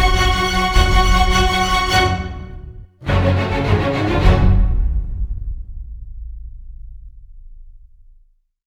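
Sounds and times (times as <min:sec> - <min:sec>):
orchestral remix: 0:00.0 - 0:05.6.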